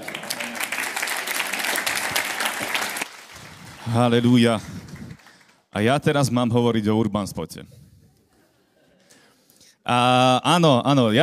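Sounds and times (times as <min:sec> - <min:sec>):
audience applauding: 0:00.0 - 0:05.7
speech: 0:03.9 - 0:04.7, 0:05.8 - 0:07.8, 0:09.9 - 0:11.2.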